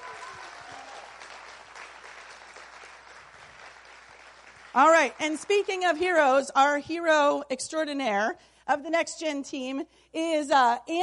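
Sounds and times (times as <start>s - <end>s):
applause: 0.0s - 6.2s
speech: 4.8s - 11.0s.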